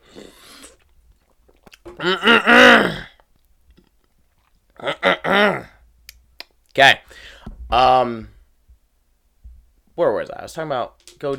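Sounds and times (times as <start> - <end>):
person drinking water: 0.0 - 4.9
speech: 2.0 - 3.0, 6.8 - 8.3, 10.0 - 11.3.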